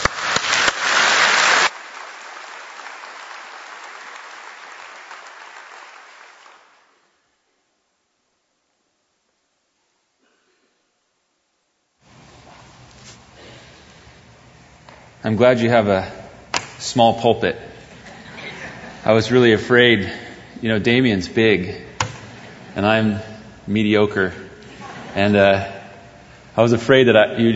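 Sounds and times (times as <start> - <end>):
audience applause welcoming a guest pastor to the pulpit: 0.0 - 7.0
speech: 15.2 - 16.2, 16.8 - 17.7, 19.0 - 21.9, 22.8 - 24.4, 25.2 - 25.7, 26.6 - 27.5
laughter: 17.8 - 20.7, 22.2 - 23.2, 24.6 - 26.0.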